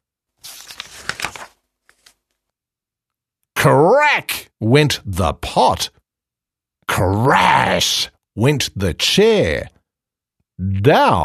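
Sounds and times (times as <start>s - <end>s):
book pages being ripped: 0.4s - 2.2s
speech: 3.6s - 6.0s, 7.0s - 9.8s, 10.6s - 11.2s.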